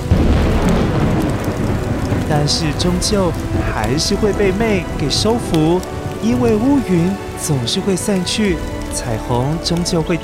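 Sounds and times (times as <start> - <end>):
thunder: 0.0 - 7.8
heavy rain: 0.0 - 10.2
speech: 2.3 - 10.2.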